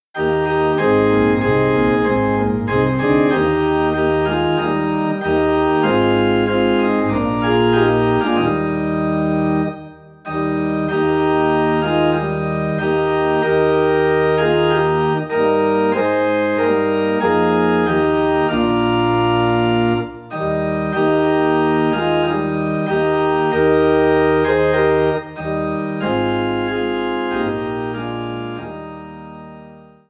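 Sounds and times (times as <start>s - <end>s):
organ in E flat: 0.1s - 30.0s.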